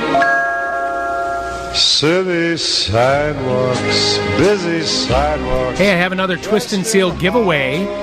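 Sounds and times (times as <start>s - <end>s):
bell ringing: 0.1s - 2.2s
speech: 2.0s - 8.0s.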